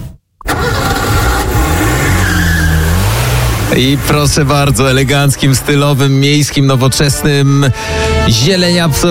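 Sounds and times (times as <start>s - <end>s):
Renault Clio tires squealing: 0.5s - 6.3s
Renault Clio engine revving: 0.5s - 6.4s
road noise: 0.5s - 8.3s
speech: 3.7s - 9.0s.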